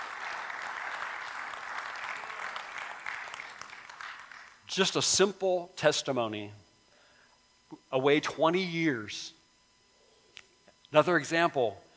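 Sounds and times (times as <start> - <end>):
crowd applause: 0.0 - 4.6
speech: 4.8 - 6.6, 7.9 - 9.4, 10.9 - 11.8.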